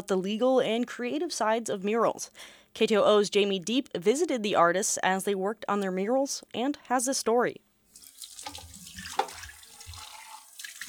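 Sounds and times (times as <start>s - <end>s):
speech: 0.0s - 7.7s
running water splashing as paintbrushes are washed at the Juneau Arts and Culture Center: 7.9s - 10.8s.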